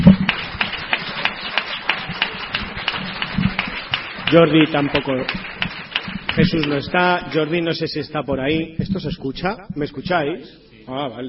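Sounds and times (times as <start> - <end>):
audience applause: 0.0 - 7.6
speech: 4.3 - 5.5, 6.4 - 11.2.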